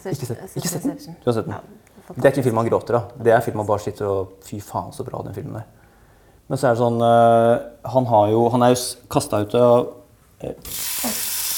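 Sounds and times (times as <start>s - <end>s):
speech: 0.0s - 5.8s, 6.5s - 11.2s
steak sizzling in a hot frying pan: 10.7s - 11.5s.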